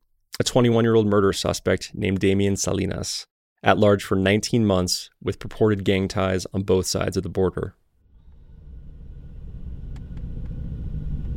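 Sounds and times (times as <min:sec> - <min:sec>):
speech: 0:00.4 - 0:07.8
truck driving engine rumble: 0:08.1 - 0:11.3.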